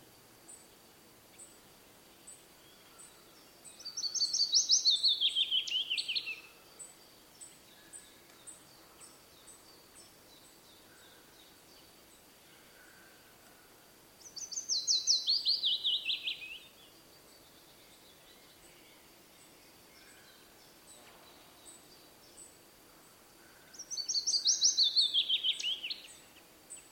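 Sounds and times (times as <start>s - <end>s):
willow warbler descending song: 3.7s - 6.5s, 14.2s - 18.6s, 23.7s - 26.4s.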